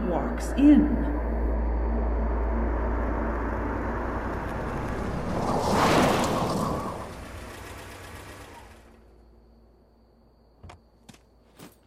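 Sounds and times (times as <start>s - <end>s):
brakes squealing: 0.5s - 9.4s
car pulling up to the building: 1.2s - 9.7s.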